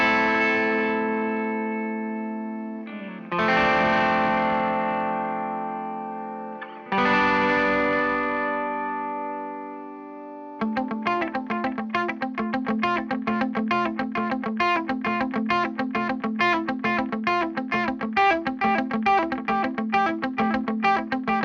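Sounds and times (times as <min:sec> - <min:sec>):
guitar: 0:00.0 - 0:21.4.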